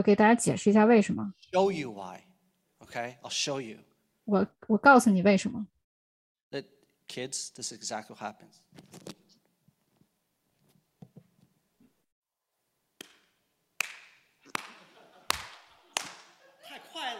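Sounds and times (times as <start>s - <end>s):
speech: 0.0s - 2.3s, 2.9s - 5.8s, 6.5s - 9.2s
hand clapping: 13.0s - 16.4s
laughter: 14.5s - 17.1s.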